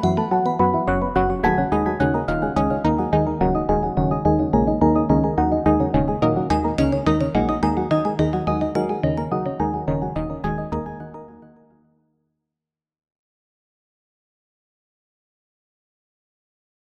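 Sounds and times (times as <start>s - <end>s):
KORG wavestate synthesizer factory sound: 0.0s - 11.8s.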